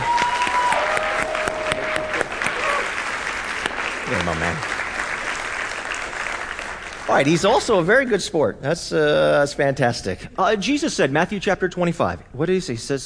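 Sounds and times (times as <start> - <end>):
audience applause: 0.0 - 7.8
speech: 4.2 - 4.8, 7.1 - 13.0.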